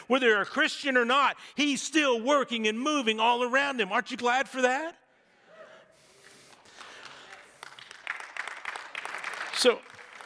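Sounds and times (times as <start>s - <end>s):
speech: 0.1s - 5.0s, 9.6s - 9.9s
audience applause: 6.7s - 10.2s.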